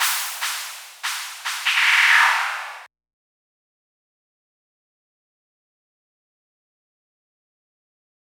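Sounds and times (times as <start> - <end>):
psytrance cymbal: 0.0 - 2.9.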